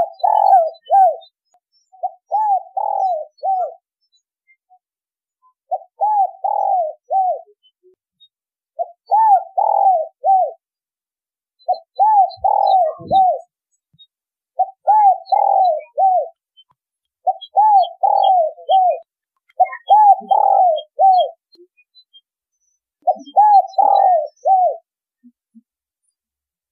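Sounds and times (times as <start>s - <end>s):
spotted dove cooing: 0.0s - 1.3s, 2.0s - 3.8s, 5.7s - 7.6s, 8.8s - 10.6s, 11.7s - 13.5s, 14.6s - 16.4s, 17.2s - 21.4s, 23.0s - 24.9s.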